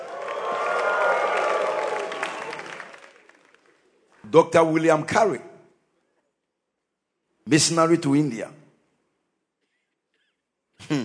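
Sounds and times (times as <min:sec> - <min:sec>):
audience applauding: 0:00.0 - 0:04.2
speech: 0:04.3 - 0:05.5, 0:07.5 - 0:08.6.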